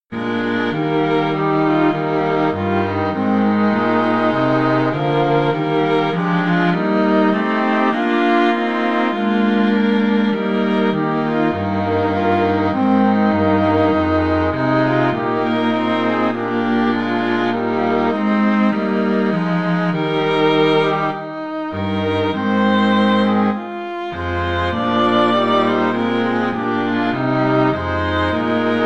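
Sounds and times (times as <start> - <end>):
string quartet: 0.0 - 28.8.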